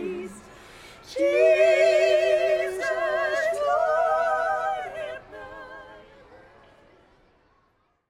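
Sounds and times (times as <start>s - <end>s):
carolers singing: 0.0s - 6.4s.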